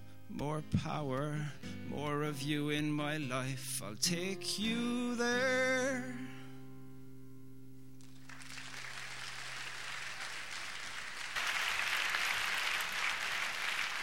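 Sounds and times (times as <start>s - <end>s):
speech: 0.3s - 6.4s
audience applause: 8.0s - 14.0s.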